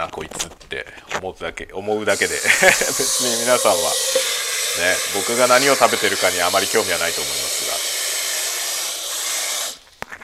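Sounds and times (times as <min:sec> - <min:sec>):
speech: 0:00.0 - 0:07.8
large pot of water heating on a stove: 0:02.1 - 0:10.0
laughter: 0:02.2 - 0:03.6.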